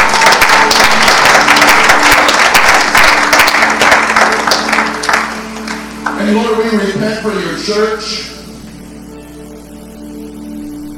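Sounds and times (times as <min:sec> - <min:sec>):
audience clapping hands: 0:00.0 - 0:06.4
speech: 0:06.3 - 0:08.3.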